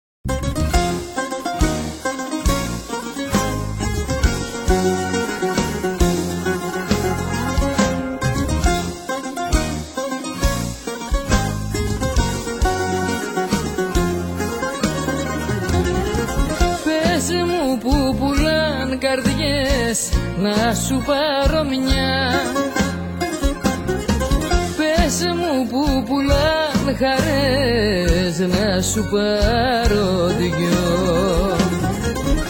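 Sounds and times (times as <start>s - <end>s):
zeibekiko dance music: 0.2s - 32.4s.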